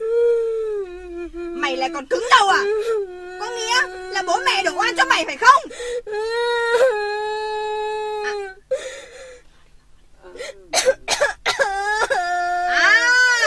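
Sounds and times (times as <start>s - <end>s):
child crying and wailing: 0.0s - 8.8s, 11.5s - 13.4s
speech: 1.7s - 7.0s.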